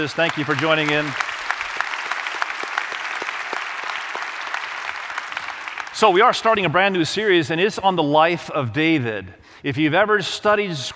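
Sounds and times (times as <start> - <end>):
speech: 0.0 - 1.3, 6.0 - 10.9
audience applause: 0.0 - 6.5.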